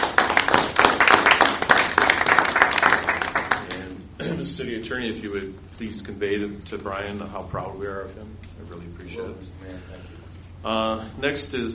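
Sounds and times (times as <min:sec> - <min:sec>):
council applause: 0:00.0 - 0:03.9
speech: 0:04.6 - 0:11.7.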